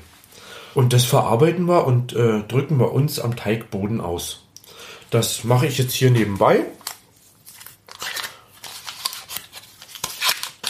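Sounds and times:
speech: 0.8s - 4.4s, 5.1s - 6.8s
butter packaging rustling as butter is unwrapped: 7.2s - 10.6s.

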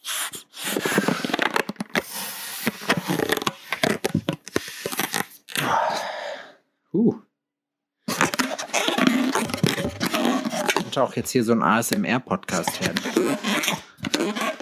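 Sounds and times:
rubbery balloon squeaks and stretching noises: 0.0s - 5.6s, 8.1s - 11.8s, 12.4s - 14.6s
breath blowing up a balloon: 0.0s - 6.5s, 8.1s - 11.0s, 12.7s - 14.6s
speech: 11.0s - 14.5s.

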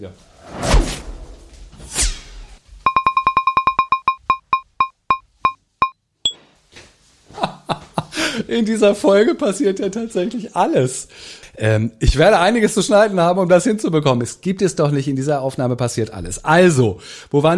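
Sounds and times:
speech: 0.0s - 0.6s, 8.5s - 17.5s
doorbell ringing: 2.9s - 5.6s.

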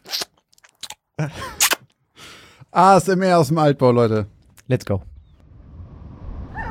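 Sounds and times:
smacking while chewing gum: 0.0s - 1.0s
speech: 1.2s - 1.6s, 2.8s - 5.1s.

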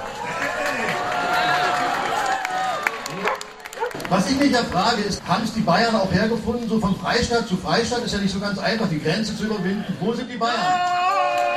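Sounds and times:
few people clapping: 0.0s - 5.2s, 10.8s - 11.5s
speech: 4.1s - 11.0s.

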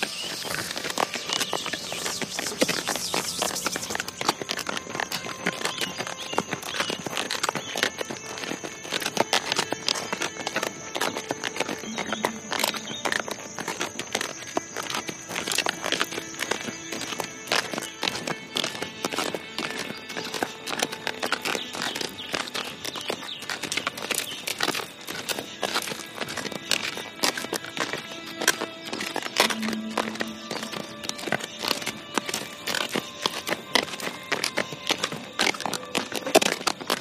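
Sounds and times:
horse hooves clip-clopping: 0.0s - 36.9s.

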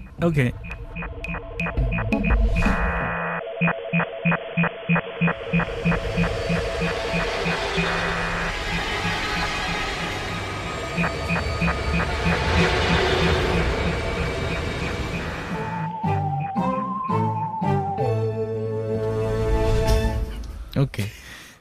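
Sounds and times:
speech: 0.2s - 8.3s, 11.0s - 14.0s, 20.8s - 21.2s
podcast instrumental jingle: 5.6s - 20.2s.

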